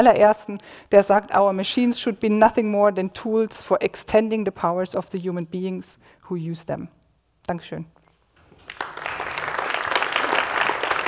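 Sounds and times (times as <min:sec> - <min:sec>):
speech: 0:00.0 - 0:08.0
audience applause: 0:08.4 - 0:11.0.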